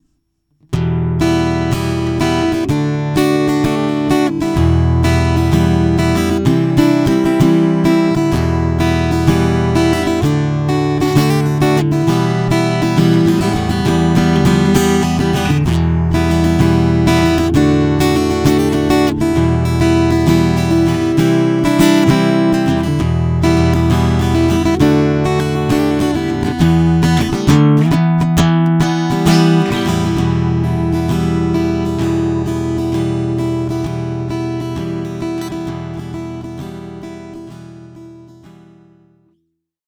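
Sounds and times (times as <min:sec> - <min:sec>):
compressed 12-string guitar: 0:00.6 - 0:39.4.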